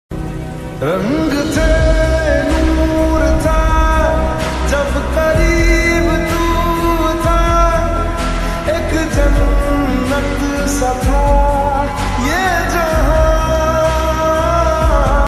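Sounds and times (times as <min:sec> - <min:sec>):
slowed reverb music: 0:00.1 - 0:15.2.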